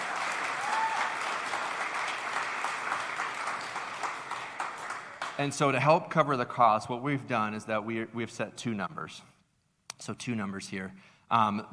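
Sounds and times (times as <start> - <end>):
crowd applause: 0.0 - 5.4
speech: 5.4 - 9.3, 10.0 - 11.7.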